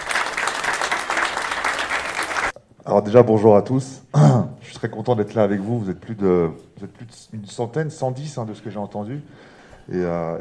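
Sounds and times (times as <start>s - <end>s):
audience applause: 0.0s - 2.5s
speech: 2.9s - 10.3s.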